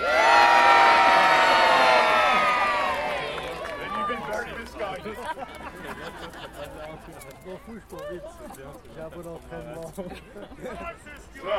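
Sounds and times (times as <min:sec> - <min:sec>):
crowd cheering: 0:00.0 - 0:08.1
laughter: 0:02.0 - 0:08.8, 0:09.7 - 0:11.4
speech: 0:07.7 - 0:11.1.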